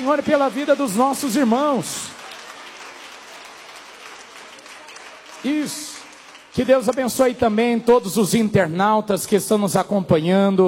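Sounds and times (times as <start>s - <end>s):
speech: 0.0s - 2.2s, 5.4s - 6.0s, 6.6s - 10.6s
audience applause: 0.0s - 7.6s.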